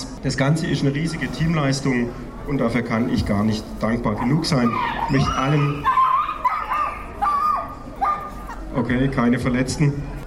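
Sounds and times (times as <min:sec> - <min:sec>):
speech: 0:00.2 - 0:06.0, 0:08.8 - 0:10.1
small dog barking loudly: 0:04.2 - 0:08.6.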